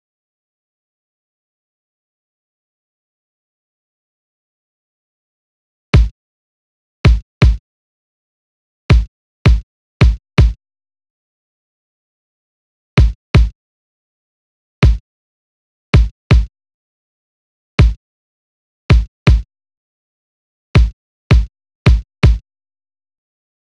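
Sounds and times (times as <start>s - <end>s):
kick drum: 7.1s - 7.6s, 8.9s - 10.6s, 13.0s - 13.6s, 14.8s - 15.0s, 16.0s - 16.5s, 17.8s - 18.0s, 18.9s - 19.5s, 20.8s - 22.4s.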